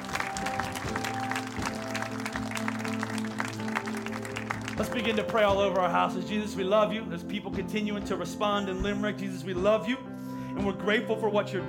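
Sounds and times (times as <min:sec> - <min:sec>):
audience applauding: 0:00.0 - 0:06.0
speech: 0:04.8 - 0:11.6.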